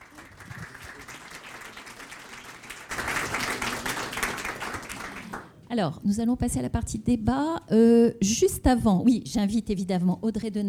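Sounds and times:
audience applause: 0.0 - 5.6
speech: 5.7 - 10.6.

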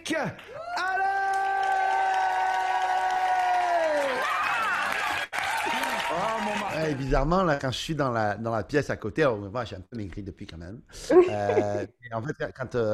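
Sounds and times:
speech: 0.1 - 0.9, 6.1 - 12.9
long drawn-out shout: 0.5 - 6.7
audience applause: 0.8 - 7.1.

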